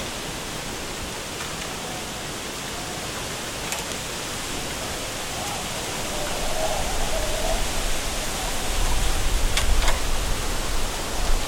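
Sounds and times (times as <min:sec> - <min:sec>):
strong wind through a bamboo forest: 0:00.0 - 0:11.4
bamboo cracks and faint creaks: 0:09.5 - 0:10.1.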